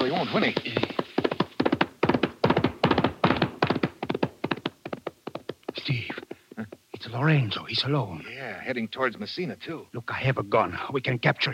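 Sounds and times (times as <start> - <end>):
horse hooves approaching: 0.0 - 7.6
speech: 0.2 - 1.0, 7.1 - 11.5.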